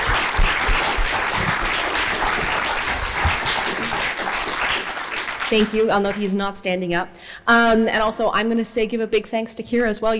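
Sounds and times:
audience applause: 0.0s - 5.9s
speech: 5.5s - 10.1s.

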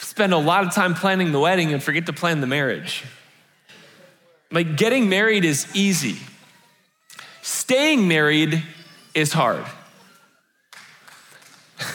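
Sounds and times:
speech: 0.2s - 3.2s, 4.5s - 6.3s, 7.7s - 9.8s
audience clapping: 10.7s - 11.9s.

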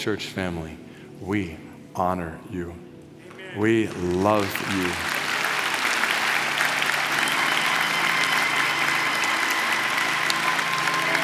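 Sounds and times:
speech: 0.0s - 2.9s, 3.5s - 5.1s
polite golf clap applause: 3.3s - 11.2s.

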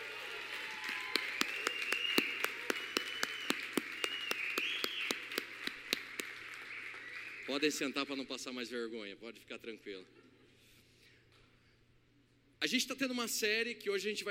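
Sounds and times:
audience applauding: 0.0s - 8.1s
speech: 7.5s - 10.2s, 12.7s - 14.3s.

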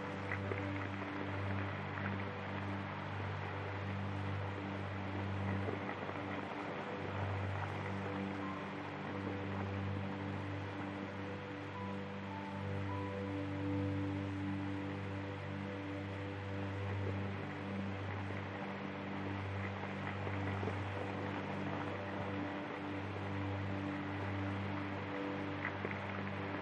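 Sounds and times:
low sustained tones: 0.0s - 26.5s
vinyl crackle and hiss of a record player: 0.0s - 26.5s.

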